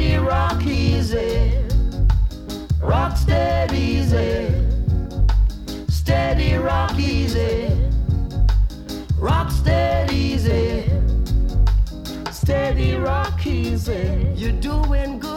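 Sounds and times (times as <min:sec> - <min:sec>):
reggae music: 0:00.0 - 0:15.3.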